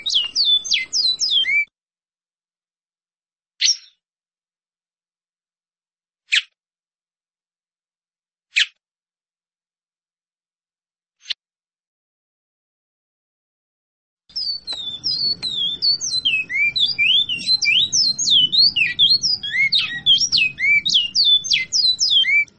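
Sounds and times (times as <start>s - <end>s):
bicudo singing: 0.0s - 1.6s, 14.3s - 22.5s.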